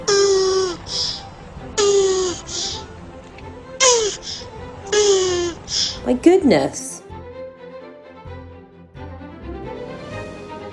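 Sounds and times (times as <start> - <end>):
tortoise making a happy noise: 0.0 - 6.1
speech: 6.2 - 6.9.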